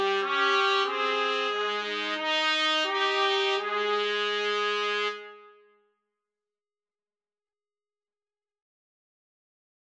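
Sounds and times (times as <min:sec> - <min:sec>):
trumpet trio playing: 0:00.0 - 0:05.6.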